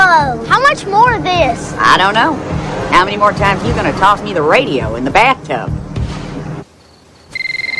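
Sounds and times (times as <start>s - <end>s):
speech: 0.1s - 5.9s
telephone ringing with electronic trill: 7.3s - 7.7s.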